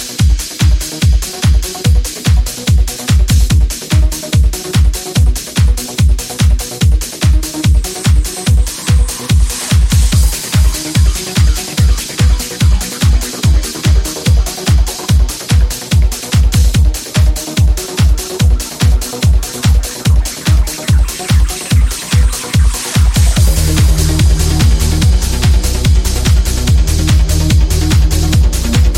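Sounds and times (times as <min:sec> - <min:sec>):
trance music: 0:00.0 - 0:28.9.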